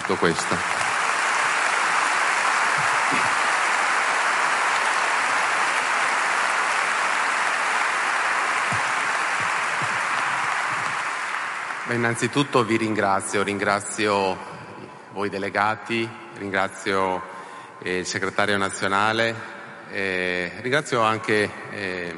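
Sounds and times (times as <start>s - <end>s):
audience applause: 0.0s - 12.8s
speech: 0.1s - 0.9s, 11.9s - 14.6s, 15.2s - 22.1s.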